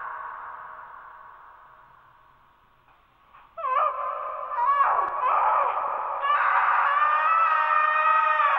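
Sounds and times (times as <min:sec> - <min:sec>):
dark tortured female screams: 0:03.6 - 0:08.5.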